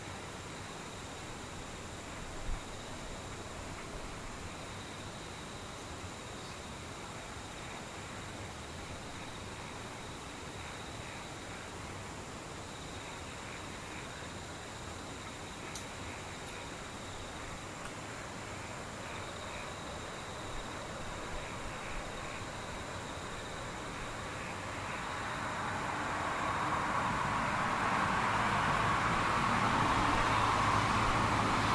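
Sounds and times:
faint insects: 0.0 - 31.7
rushing vehicle-like wash: 25.4 - 31.7.

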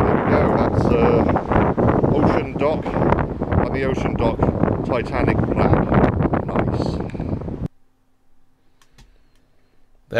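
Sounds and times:
wind blowing across the microphone: 0.0 - 7.7
speech: 3.8 - 5.9.

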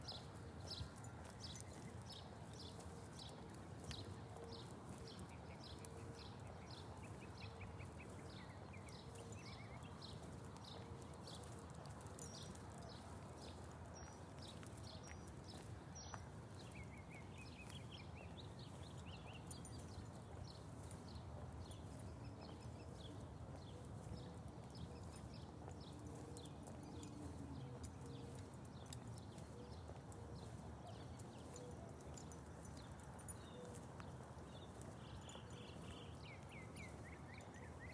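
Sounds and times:
birds chirping at daybreak in Phoenix, Arizona: 0.0 - 37.9.

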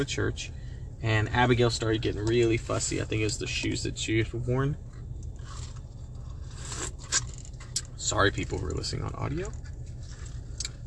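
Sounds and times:
speech: 0.0 - 4.9, 8.1 - 9.7
steady low hum: 0.0 - 10.8
person slurping a drink: 6.3 - 7.3.

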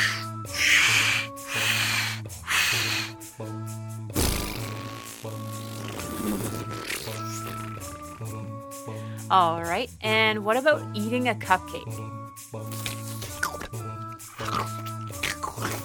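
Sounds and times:
voice imitating blowing up a balloon: 0.0 - 3.2, 4.2 - 8.3, 12.6 - 15.8
speech: 9.3 - 12.6.

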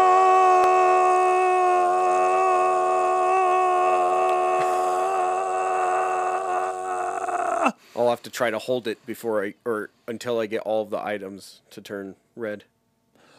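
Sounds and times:
person screaming loudly: 0.0 - 7.8
speech: 8.0 - 12.7.

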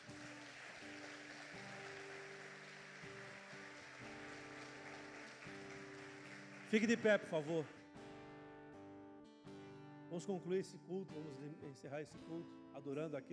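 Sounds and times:
audience clapping: 0.0 - 8.2
speech: 6.7 - 7.8, 10.2 - 13.3.

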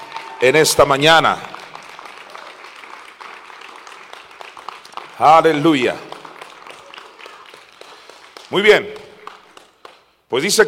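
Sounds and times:
audience applause: 0.0 - 10.0
speech: 0.4 - 1.6, 5.2 - 6.1, 8.5 - 9.0, 10.3 - 10.6.

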